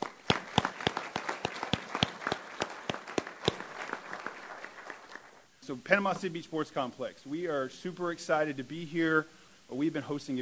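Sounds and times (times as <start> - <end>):
crowd applauding: 0.0 - 5.4
speech: 5.7 - 10.4.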